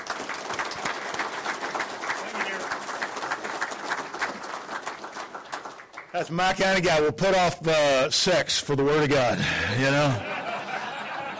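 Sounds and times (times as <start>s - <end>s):
audience applause welcoming a speaker at a morning gathering in Richland Hills: 0.0s - 6.6s
speech: 6.2s - 10.3s
laughter: 9.2s - 11.3s.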